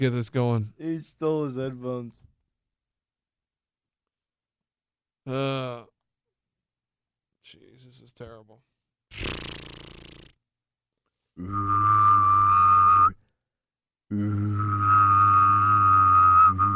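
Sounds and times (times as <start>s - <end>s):
speech: 0.0s - 2.3s, 5.3s - 5.9s, 7.4s - 9.6s, 11.4s - 11.9s, 14.1s - 14.6s
person humming and whistling at the same time: 11.4s - 13.2s, 14.1s - 16.7s.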